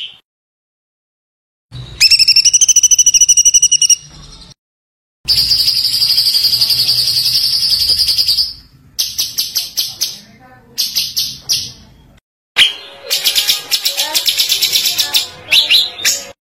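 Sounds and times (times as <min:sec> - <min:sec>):
white-eye trilling song: 0:01.8 - 0:04.4, 0:05.3 - 0:12.0, 0:12.6 - 0:16.4.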